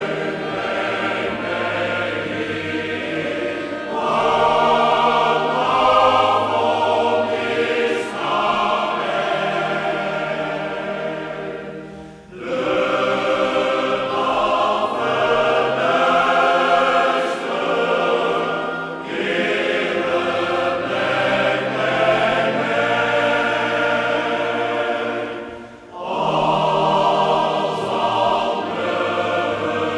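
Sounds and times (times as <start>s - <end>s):
male choir singing: 0.0s - 29.9s.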